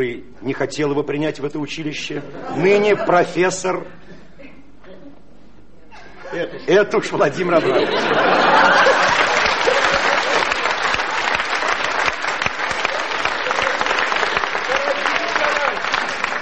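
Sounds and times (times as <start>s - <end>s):
speech: 0.0s - 4.0s, 6.3s - 9.2s
laughter: 2.2s - 4.8s, 5.8s - 16.1s
audience applause: 8.0s - 16.4s.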